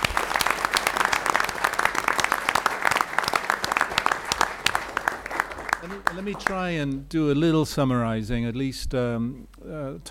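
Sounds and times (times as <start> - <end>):
audience applause: 0.0 - 7.0
speech: 5.9 - 10.1.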